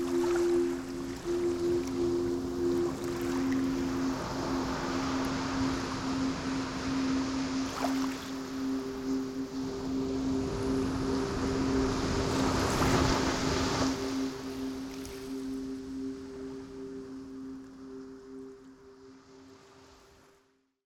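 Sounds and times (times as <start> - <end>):
ocean waves: 0.0 - 20.0.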